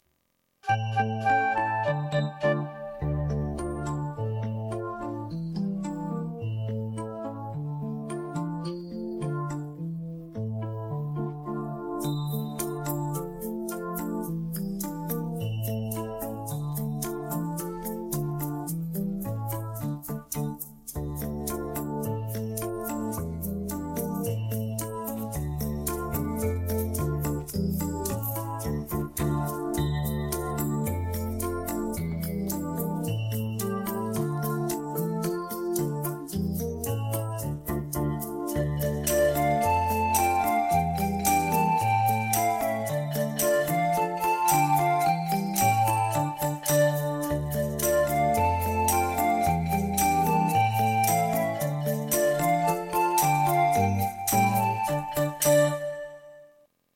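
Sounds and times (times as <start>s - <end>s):
backing track: 0.6s - 9.8s, 10.6s - 56.2s.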